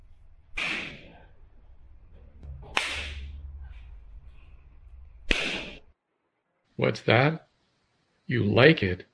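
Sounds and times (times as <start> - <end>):
hand spanking bare buttocks: 0.6 - 1.1, 2.7 - 3.2, 5.3 - 5.8
speech: 6.8 - 7.5, 8.3 - 9.1.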